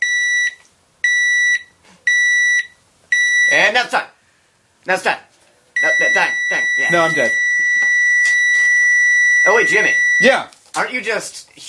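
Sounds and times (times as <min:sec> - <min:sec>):
heart monitor beeping: 0:00.0 - 0:03.6, 0:05.8 - 0:10.4
speech: 0:03.6 - 0:04.1, 0:04.8 - 0:05.3, 0:05.9 - 0:07.4, 0:09.5 - 0:11.6.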